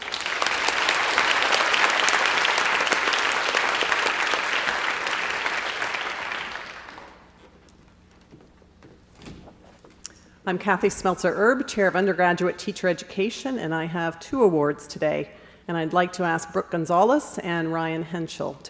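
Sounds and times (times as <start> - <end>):
audience applause: 0.0 - 7.4
faint knock: 7.0 - 10.4
speech: 10.5 - 18.6.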